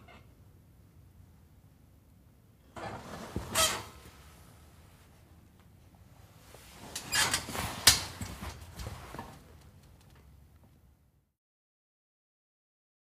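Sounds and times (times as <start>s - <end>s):
body getting into and sitting down on bunk bed: 2.4s - 11.3s
bunk bed spring squeaks: 2.8s - 4.0s, 6.9s - 8.8s.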